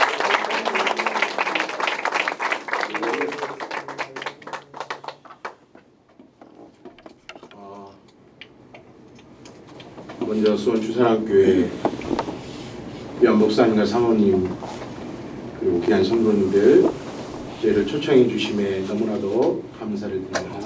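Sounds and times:
audience applauding: 0.0s - 5.8s
speech: 10.3s - 12.0s, 13.2s - 14.6s, 15.8s - 17.0s, 17.7s - 20.6s.

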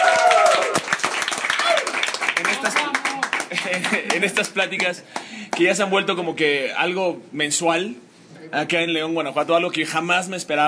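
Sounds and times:
audience applause at Sneak Comics: 0.0s - 5.4s
speech: 3.7s - 10.6s.

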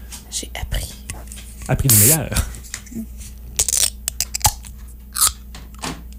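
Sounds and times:
speech: 0.3s - 3.2s
energy drink can tab cracking open: 3.6s - 5.4s.

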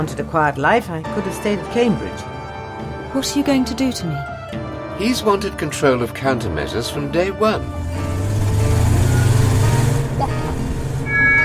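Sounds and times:
speech: 0.0s - 2.4s, 3.1s - 4.3s, 5.0s - 8.1s
car engine rumbling while driving: 7.6s - 11.4s.

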